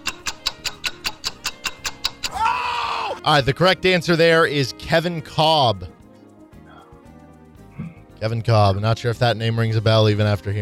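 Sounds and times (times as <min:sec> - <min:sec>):
quiz countdown timer ticking: 0:00.0 - 0:02.6
speech: 0:03.2 - 0:05.9, 0:08.2 - 0:10.6.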